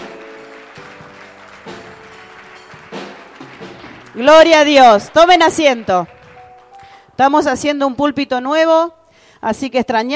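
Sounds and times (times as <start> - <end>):
audience applause: 0.0 - 7.1
speech: 4.2 - 6.2, 7.2 - 10.1.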